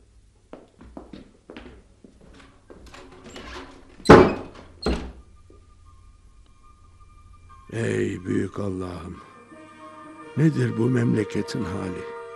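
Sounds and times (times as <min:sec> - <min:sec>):
shop doors being closed with heavy wooden thuds: 0:02.8 - 0:05.3
speech: 0:07.8 - 0:09.3, 0:10.4 - 0:12.2.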